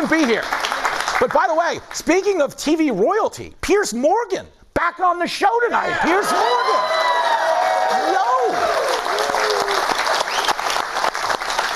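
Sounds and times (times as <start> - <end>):
studio audience applause: 0.0 - 1.5, 6.2 - 11.7
speech: 0.1 - 0.6, 1.2 - 7.1
whoops and cheering voices: 5.9 - 10.5.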